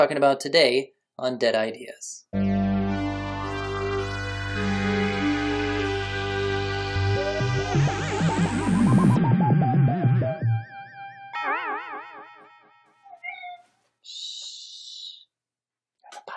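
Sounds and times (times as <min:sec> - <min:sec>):
speech: 0:00.0 - 0:02.6
layered instrumental podcast theme music: 0:02.3 - 0:13.0.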